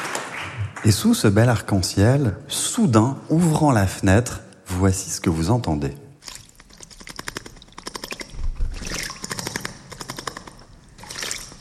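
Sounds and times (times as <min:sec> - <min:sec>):
speech: 0:00.8 - 0:06.0
small bird bathing in water: 0:06.2 - 0:11.5.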